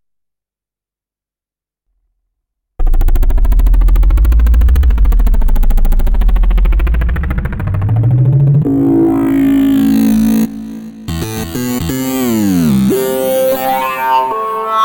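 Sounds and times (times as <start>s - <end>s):
synthesizer with filter effects: 2.8s - 14.8s.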